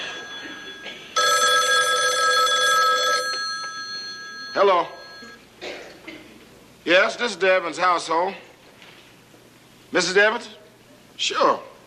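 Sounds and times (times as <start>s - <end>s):
telephone ringing: 0.0s - 5.4s
speech: 7.0s - 8.5s, 9.9s - 10.6s, 11.2s - 11.7s.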